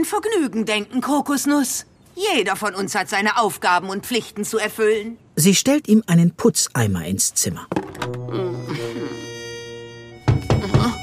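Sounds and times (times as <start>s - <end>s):
speech: 0.0s - 8.4s
knocking on a door: 10.3s - 11.0s.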